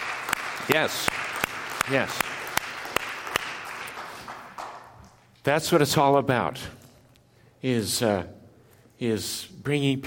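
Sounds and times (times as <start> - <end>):
audience clapping: 0.0 - 5.3
speech: 0.7 - 1.2, 1.9 - 2.3, 5.4 - 6.8, 7.6 - 8.4, 9.0 - 10.0.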